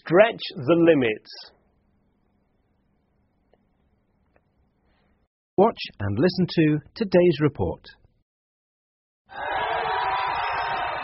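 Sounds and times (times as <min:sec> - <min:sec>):
speech: 0:00.1 - 0:01.6, 0:05.6 - 0:08.0, 0:09.3 - 0:09.6
rapturous applause for India's Prime Minister: 0:09.3 - 0:11.0.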